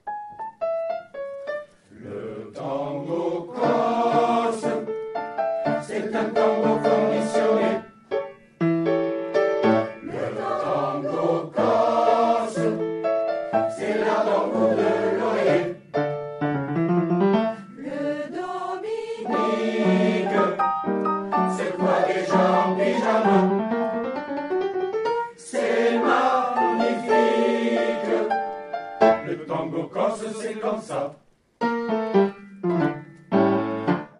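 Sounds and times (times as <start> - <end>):
Corsican tango music: 0.0 - 18.1, 19.2 - 30.9, 31.6 - 34.1.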